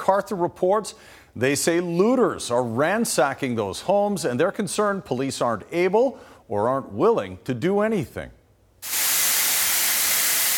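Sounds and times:
speech: 0.1 - 9.0
water pouring from a burst pipe onto the floor: 8.8 - 10.5.

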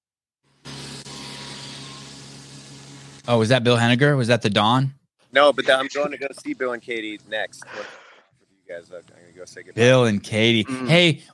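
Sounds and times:
lawnmower engine running: 0.4 - 4.0
speech: 3.3 - 8.0, 8.7 - 11.3.

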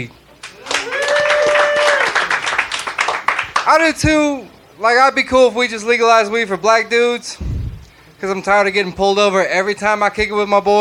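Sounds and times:
speech: 0.0 - 0.2, 3.7 - 7.5, 8.2 - 10.7
round of applause: 0.4 - 3.8.

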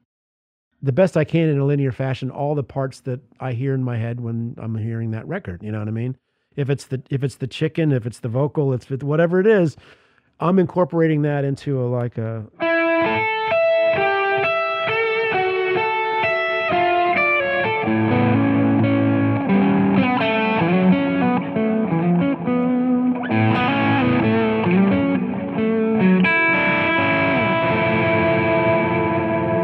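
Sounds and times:
speech: 0.8 - 12.7
electric guitar chord melody with distortion and echo effects: 12.4 - 29.6.

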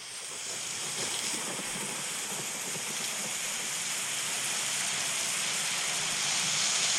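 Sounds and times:
rainstorm from a rain sounds app: 0.0 - 6.9.

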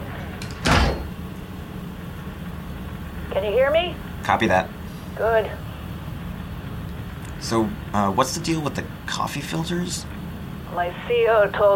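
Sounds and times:
hatch door closing: 0.2 - 1.2
speech: 3.4 - 5.6, 7.4 - 10.1, 10.7 - 11.7.

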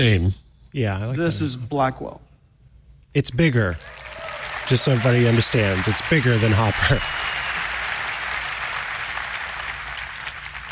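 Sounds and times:
speech: 0.0 - 2.3, 3.1 - 4.1, 4.7 - 7.3
audience applauding: 3.8 - 10.7.

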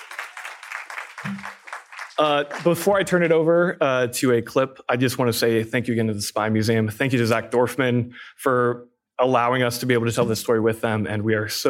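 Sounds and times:
audience round of applause: 0.0 - 3.1
speech: 2.2 - 11.6.

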